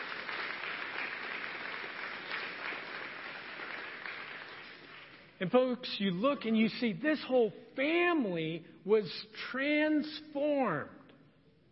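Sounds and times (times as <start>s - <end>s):
crowd clapping: 0.0s - 5.4s
speech: 5.4s - 11.0s.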